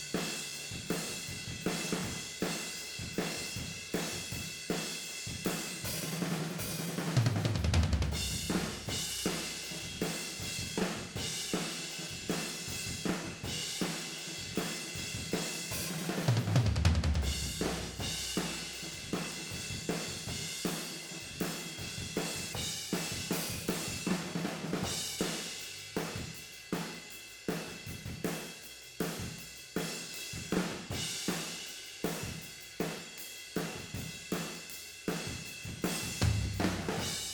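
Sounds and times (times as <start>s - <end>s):
tom drums recorded with overheads and room microphones: 0.0s - 37.3s.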